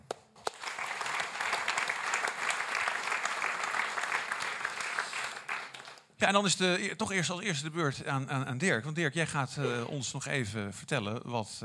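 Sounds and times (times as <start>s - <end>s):
audience applause: 0.4s - 6.1s
speech: 6.2s - 11.6s.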